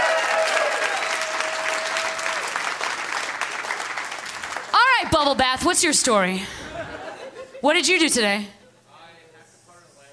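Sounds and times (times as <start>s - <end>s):
audience applause: 0.0s - 5.0s
speech: 5.1s - 6.7s, 7.6s - 8.6s
laughter: 6.4s - 7.7s.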